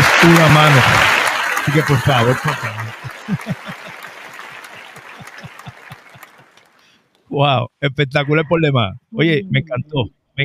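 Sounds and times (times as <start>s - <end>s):
laughter: 0.0s - 6.5s
audience applause: 0.0s - 6.8s
speech: 0.2s - 3.5s, 7.4s - 10.4s.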